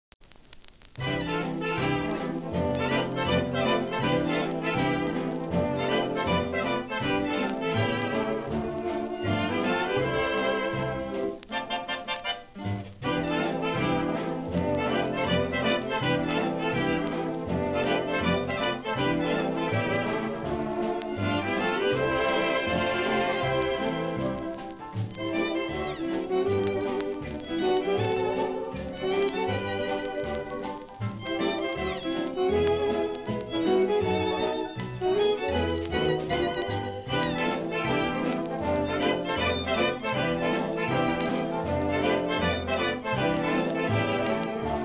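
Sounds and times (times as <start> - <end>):
rain on the roof: 0.1 - 44.8
orchestra: 0.8 - 44.8.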